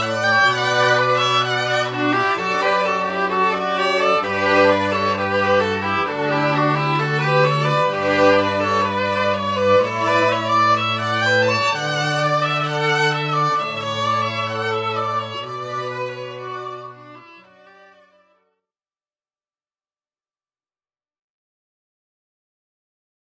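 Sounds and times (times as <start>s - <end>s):
classical ensemble playing: 0.0s - 18.2s.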